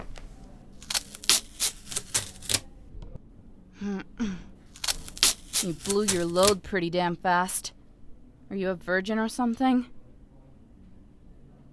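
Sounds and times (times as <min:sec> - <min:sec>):
duct tape pulled off: 0:00.8 - 0:02.7, 0:04.8 - 0:06.6
speech: 0:03.8 - 0:04.5, 0:05.6 - 0:07.7, 0:08.5 - 0:10.0.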